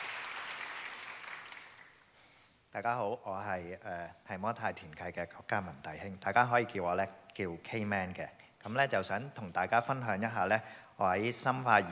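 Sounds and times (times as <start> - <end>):
audience applause: 0.0 - 2.0
speech: 2.8 - 11.8.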